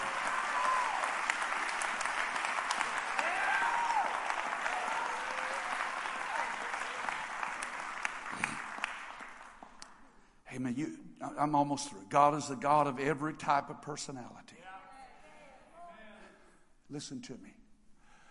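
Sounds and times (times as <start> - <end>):
audience clapping: 0.0 - 10.1
speech: 10.7 - 14.5, 16.9 - 17.6.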